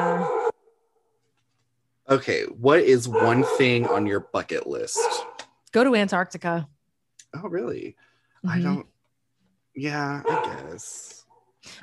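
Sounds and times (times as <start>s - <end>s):
dog barking: 0.0s - 0.6s, 3.0s - 5.4s, 10.2s - 10.8s
speech: 2.1s - 6.7s, 7.3s - 8.9s, 9.8s - 11.8s.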